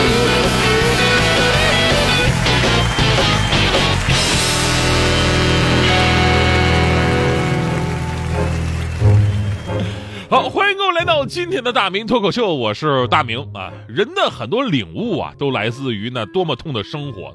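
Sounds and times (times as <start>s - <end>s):
audience applause: 0.0s - 10.3s
speech: 11.2s - 17.3s.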